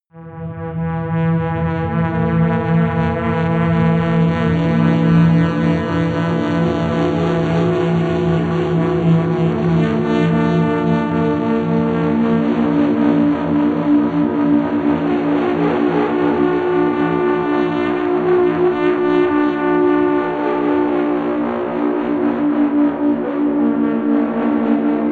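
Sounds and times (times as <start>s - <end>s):
crazy elephant drone: 0.2s - 25.0s.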